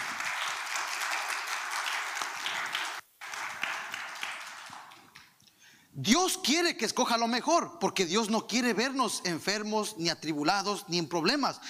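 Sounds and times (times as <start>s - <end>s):
crowd applause: 0.0s - 5.2s
speech: 6.0s - 11.6s.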